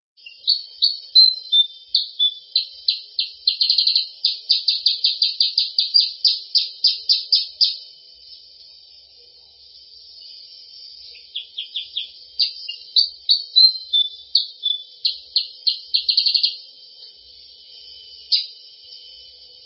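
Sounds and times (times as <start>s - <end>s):
sooty-headed bulbul calling in fast runs of high chirping notes: 0.2s - 7.9s, 11.1s - 16.8s, 18.2s - 18.7s.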